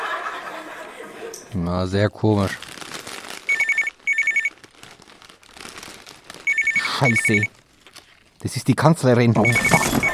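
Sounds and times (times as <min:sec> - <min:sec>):
laughter: 0:00.0 - 0:01.5
speech: 0:01.5 - 0:02.7, 0:07.0 - 0:07.6, 0:08.4 - 0:10.1
telephone bell ringing: 0:03.5 - 0:04.5, 0:06.5 - 0:07.5, 0:09.4 - 0:10.1.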